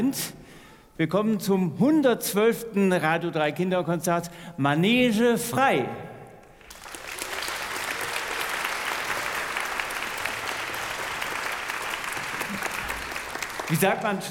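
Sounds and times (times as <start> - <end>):
speech: 0.0 - 0.4, 1.0 - 6.1, 13.7 - 14.2
audience applause: 6.6 - 14.2.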